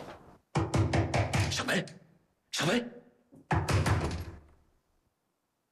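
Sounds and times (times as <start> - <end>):
heavy knocking on a door: 0.5 - 1.6, 3.4 - 4.4
speech: 1.7 - 2.0, 2.6 - 3.7.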